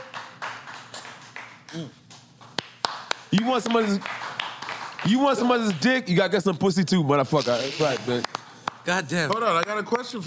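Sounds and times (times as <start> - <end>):
hand claps: 0.0 - 6.0, 8.2 - 9.9
speech: 1.7 - 2.0, 3.3 - 4.2, 5.0 - 10.2.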